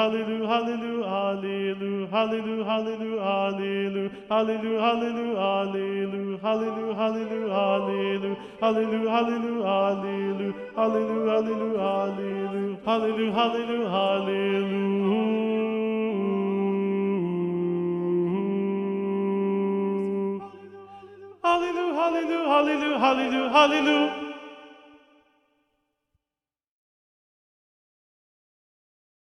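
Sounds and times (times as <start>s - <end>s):
SATB choir singing: 0.0s - 25.0s.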